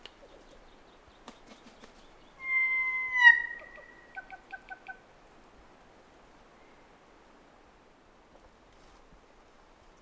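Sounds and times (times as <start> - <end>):
Kōkako giving a long flute-like whistle: 2.4 - 4.1.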